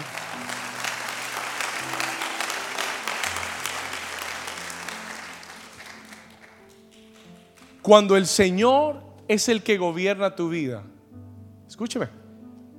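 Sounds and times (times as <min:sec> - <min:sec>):
audience applause: 0:00.0 - 0:08.0
speech: 0:07.9 - 0:11.0, 0:11.7 - 0:12.2.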